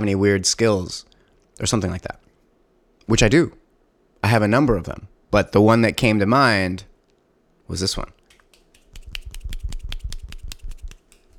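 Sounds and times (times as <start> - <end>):
speech: 0.0 - 2.2, 3.1 - 3.6, 4.2 - 6.9, 7.7 - 8.2
one-handed clapping trick snaps: 8.3 - 11.3.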